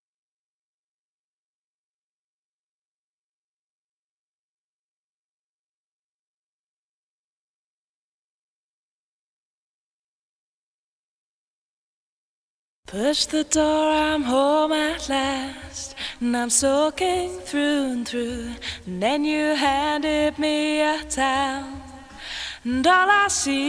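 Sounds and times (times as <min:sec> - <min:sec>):
a cappella singing in a studio: 0:12.9 - 0:23.6.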